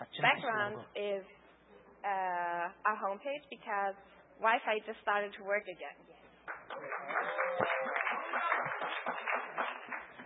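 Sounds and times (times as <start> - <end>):
speech: 0.2 - 1.4, 2.0 - 6.2
audience clapping: 6.4 - 10.2.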